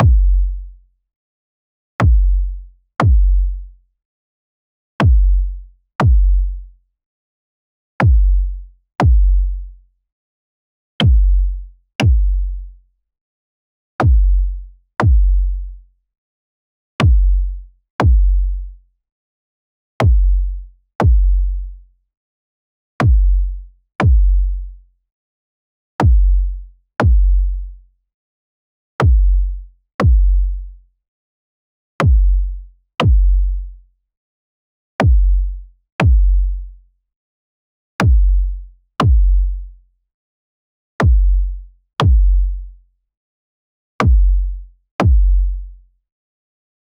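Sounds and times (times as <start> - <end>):
club kick drum with wah: 0.0 - 0.8, 2.0 - 3.7, 5.0 - 6.7, 8.0 - 9.8, 11.0 - 12.8, 14.0 - 15.8, 17.0 - 18.8, 20.0 - 21.8, 23.0 - 24.8, 26.0 - 27.8, 29.0 - 30.8, 32.0 - 33.8, 35.0 - 36.8, 38.0 - 39.8, 41.0 - 42.8, 44.0 - 45.8.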